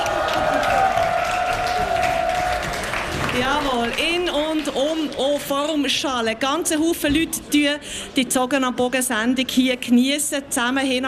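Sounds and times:
crowd clapping and shouting: 0.0s - 5.8s
speech: 3.5s - 11.0s.

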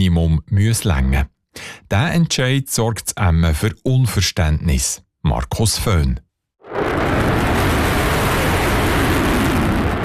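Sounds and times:
speech: 0.0s - 7.2s
F-35 fighter jet taking off: 6.6s - 10.0s.

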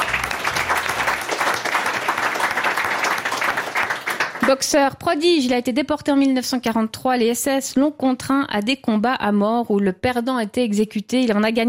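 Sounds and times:
audience applause: 0.0s - 4.6s
speech: 4.5s - 11.6s.

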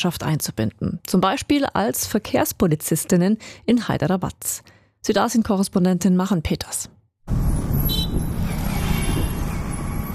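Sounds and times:
speech: 0.0s - 7.6s
road traffic at a busy intersection in Hyderabad: 7.3s - 10.1s.

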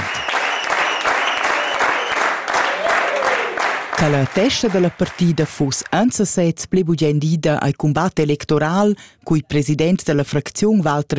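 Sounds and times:
delegates applauding newly elected councillor: 0.0s - 5.9s
speech: 4.0s - 11.1s.

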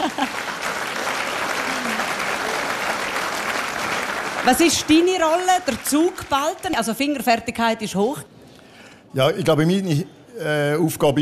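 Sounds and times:
applause: 0.0s - 7.4s
speech: 4.4s - 8.3s, 9.1s - 11.2s.

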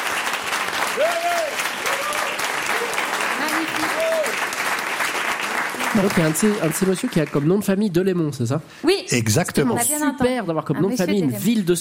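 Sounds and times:
audience applause: 0.0s - 7.8s
speech: 1.0s - 2.1s, 6.0s - 11.7s.

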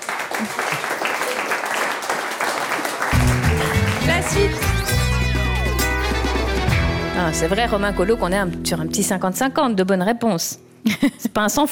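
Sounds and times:
audience applause: 0.0s - 6.7s
speech: 4.3s - 4.8s, 7.2s - 11.7s.

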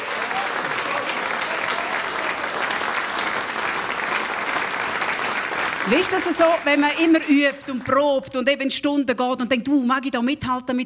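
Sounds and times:
audience applause: 0.0s - 8.3s
speech: 5.9s - 10.8s.

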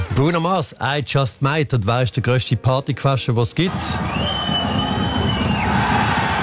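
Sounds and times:
speech: 0.2s - 4.9s
crowd cheering: 3.7s - 6.4s.

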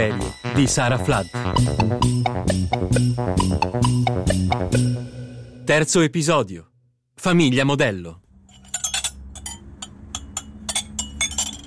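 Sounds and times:
speech: 0.0s - 8.2s
dishes clinking and clattering: 8.5s - 11.6s.

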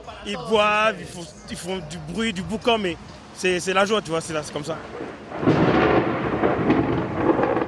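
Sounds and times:
speech: 0.2s - 5.5s
heavy rain: 2.2s - 7.6s
thunder rumbling: 4.8s - 7.6s.

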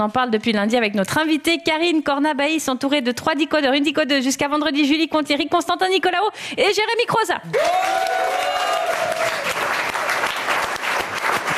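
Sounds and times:
speech: 0.0s - 8.4s
studio audience on a French talk show applauding: 7.5s - 11.5s.

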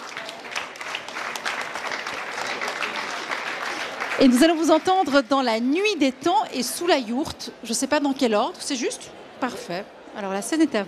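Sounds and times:
audience applause: 0.0s - 5.2s
speech: 4.2s - 10.8s.

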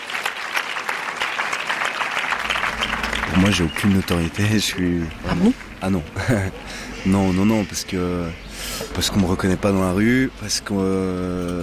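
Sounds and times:
audience applause: 0.0s - 6.0s
speech: 3.4s - 11.6s.

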